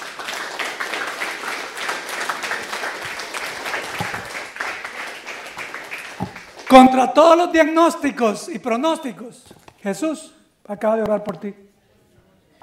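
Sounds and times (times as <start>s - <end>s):
audience clapping: 0.0s - 7.3s
speech: 6.7s - 11.7s.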